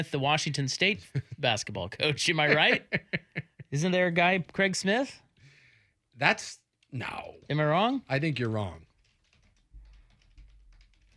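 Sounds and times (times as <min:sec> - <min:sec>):
speech: 0:00.0 - 0:05.2, 0:06.2 - 0:08.9
laughter: 0:01.0 - 0:03.9
typing on a computer keyboard: 0:06.7 - 0:11.1.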